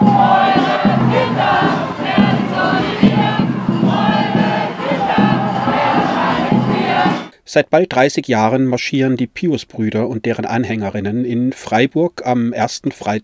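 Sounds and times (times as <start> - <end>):
hundreds of protesters shouting against the Pius Brothers in Freiburg: 0.0 - 7.3
speech: 7.6 - 13.2.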